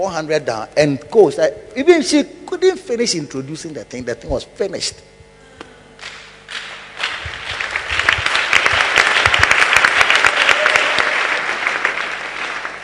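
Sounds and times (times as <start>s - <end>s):
speech: 0.0s - 5.2s
audience clapping: 6.0s - 12.8s.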